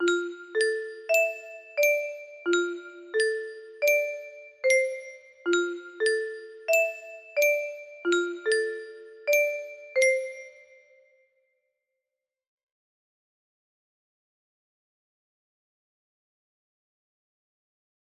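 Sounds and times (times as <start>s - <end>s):
melody: 0.0s - 10.6s.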